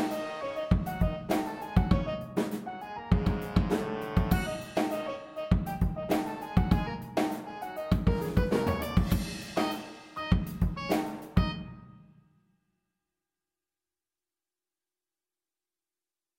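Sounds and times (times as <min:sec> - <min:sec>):
funk etude: 0:00.0 - 0:11.9.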